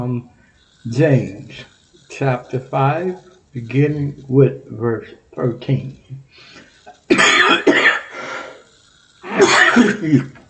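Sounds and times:
speech: 0.0 - 7.8, 9.4 - 10.4
man coughing and clearing his throat after choking up reading scripture: 7.1 - 8.2, 9.3 - 10.4.

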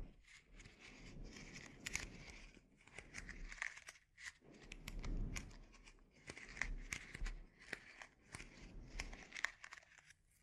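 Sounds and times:
scalp treatment crinkling and rustling: 0.0 - 10.4.

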